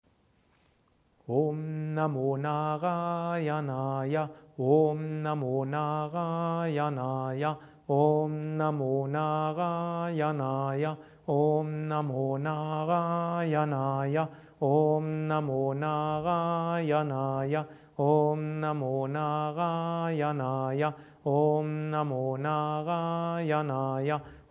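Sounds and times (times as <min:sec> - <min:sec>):
fast mantra recitation: 0:01.3 - 0:24.4.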